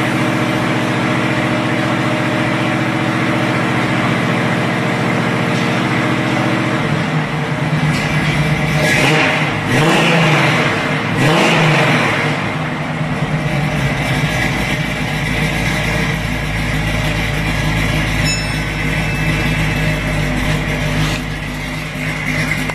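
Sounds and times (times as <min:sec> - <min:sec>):
69 Camaro SS 350 with 3-inch X-pipe exhaust: 0:00.0 - 0:22.7.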